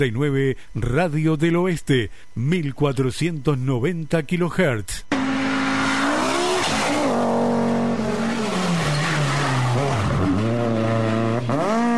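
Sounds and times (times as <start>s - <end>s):
speech: 0.0s - 5.2s
race car engine revving: 5.1s - 11.9s
tires squealing: 5.1s - 11.9s.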